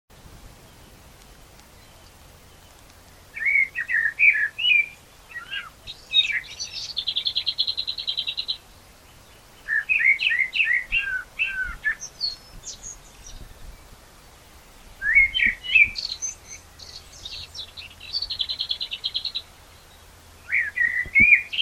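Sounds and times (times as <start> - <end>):
common blackbird singing: 1.7 - 14.0, 14.7 - 21.6.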